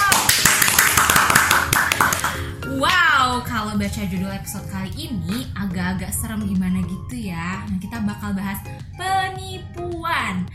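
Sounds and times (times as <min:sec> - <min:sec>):
hand clapping: 0:00.0 - 0:03.0
speech: 0:03.8 - 0:10.5.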